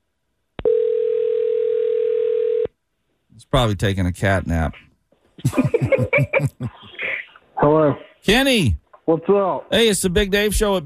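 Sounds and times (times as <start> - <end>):
telephone dial tone: 0.6 - 2.7
speech: 3.5 - 7.0, 7.6 - 10.8
laughter: 5.4 - 7.2.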